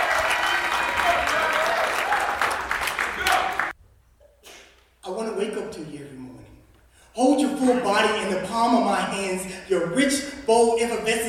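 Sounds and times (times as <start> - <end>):
applause: 0.0 - 3.8
speech: 7.6 - 11.2.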